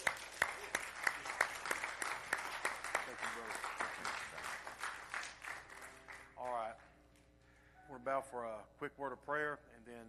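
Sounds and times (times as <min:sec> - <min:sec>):
church congregation round of applause: 0:00.0 - 0:07.3
speech: 0:08.1 - 0:10.0.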